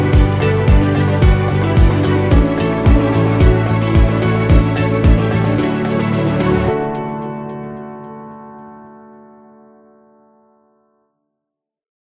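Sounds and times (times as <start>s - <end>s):
gentle corporate music: 0.0s - 9.5s.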